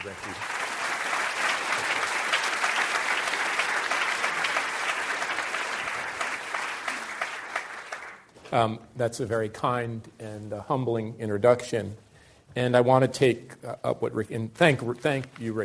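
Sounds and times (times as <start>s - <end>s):
speech: 0.0s - 0.6s, 8.5s - 15.6s
audience applause welcoming speaker Richard Florida: 0.0s - 8.3s.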